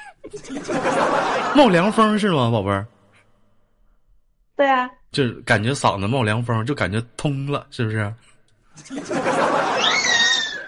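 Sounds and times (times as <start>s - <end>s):
laughter: 0.0s - 2.2s, 8.8s - 10.6s
speech: 0.3s - 0.9s, 1.6s - 2.9s, 4.6s - 10.2s
cat yowling after being stepped on: 9.8s - 10.6s.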